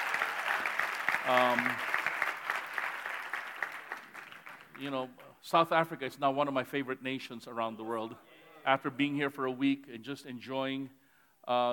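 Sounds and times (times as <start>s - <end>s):
audience round of applause: 0.0s - 4.8s
speech: 1.3s - 2.0s, 4.8s - 11.7s.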